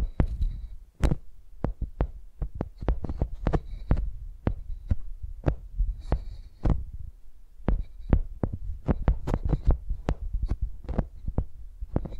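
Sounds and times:
microphones used like pencils tapping a surface: 0.0s - 7.0s, 7.6s - 12.1s
scratchy rubbing: 2.6s - 6.8s, 7.7s - 12.1s.

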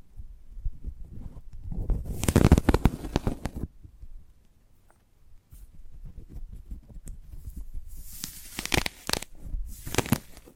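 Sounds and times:
soft low rubbing and bumps: 0.0s - 4.2s, 5.4s - 10.5s
sprouted coconut crackling scratches and tearing: 1.1s - 3.7s, 6.0s - 10.5s.

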